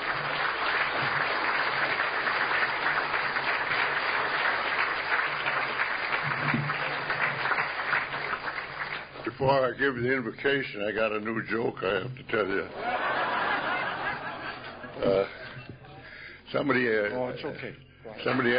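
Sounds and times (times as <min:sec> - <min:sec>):
audience applause: 0:00.0 - 0:09.4, 0:12.8 - 0:15.3
speech: 0:09.4 - 0:13.0, 0:15.0 - 0:15.4, 0:16.5 - 0:18.5
laughter: 0:12.7 - 0:16.2.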